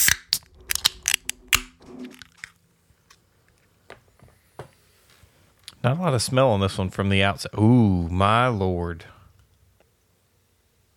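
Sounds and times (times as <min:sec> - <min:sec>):
beer can being cracked open: 0:00.0 - 0:02.6
speech: 0:05.8 - 0:09.2.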